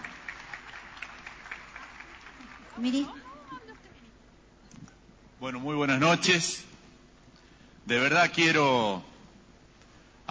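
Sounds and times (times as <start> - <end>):
audience applause: 0.0 - 4.0
speech: 2.8 - 3.3, 5.4 - 6.7, 7.9 - 9.1.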